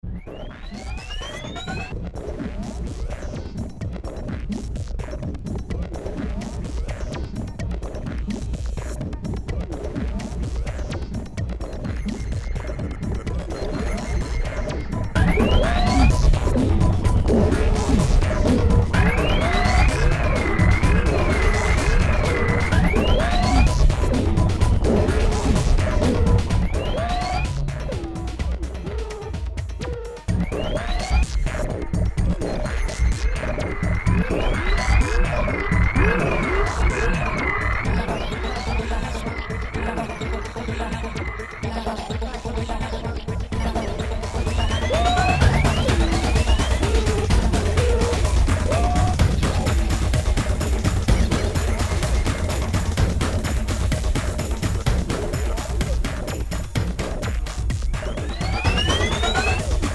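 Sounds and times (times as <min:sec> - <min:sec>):
analogue trance music: 0:00.0 - 0:59.9.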